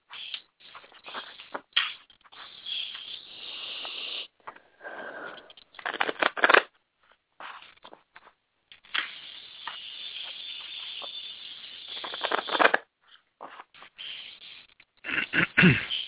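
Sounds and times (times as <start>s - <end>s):
deck of cards being shuffled: 0.1s - 4.2s, 5.8s - 11.2s, 11.9s - 14.6s.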